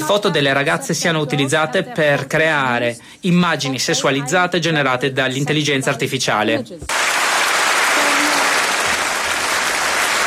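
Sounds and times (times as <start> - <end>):
speech: 0.1 - 7.1
parliament applause after speech: 6.9 - 10.2.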